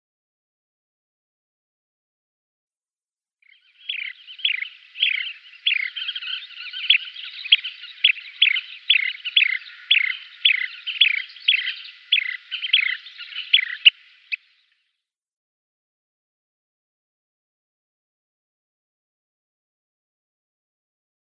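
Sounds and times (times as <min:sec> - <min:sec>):
Kentish plover calls: 0:03.5 - 0:14.8.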